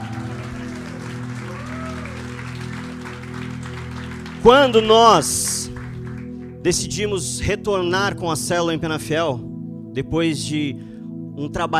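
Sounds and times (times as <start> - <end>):
audience applause: 0.0 - 6.4
sustained droning keyboard chords: 0.0 - 11.7
speech: 4.4 - 5.6, 6.6 - 11.7.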